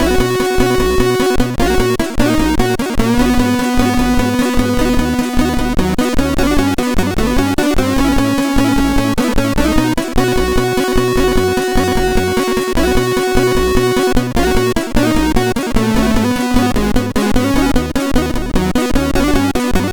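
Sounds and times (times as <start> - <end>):
ballad on MOS6581R2 sound chip: 0.0 - 19.9.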